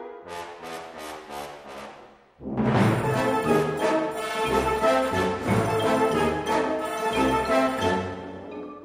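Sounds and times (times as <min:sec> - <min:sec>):
fanfare band playing a sword dance: 0:02.5 - 0:08.5.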